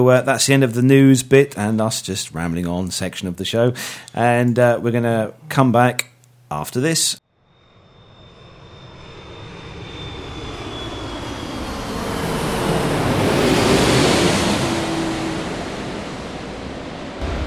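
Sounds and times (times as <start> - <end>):
speech: 0.0 - 7.2
thin high whine: 7.4 - 12.0
airplane passing overhead: 7.5 - 17.4
ocean surf on a beach: 13.0 - 17.4.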